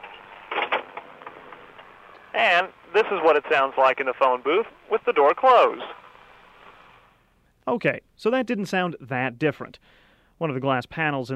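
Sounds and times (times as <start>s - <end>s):
busy highway traffic in Prairie Grove heard from open phone booth: 0.0s - 7.2s
speech: 2.4s - 6.0s, 7.7s - 11.3s.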